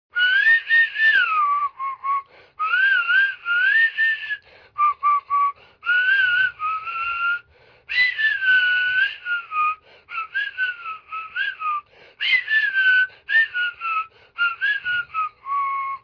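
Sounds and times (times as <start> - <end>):
person whistling: 0.1 - 16.0.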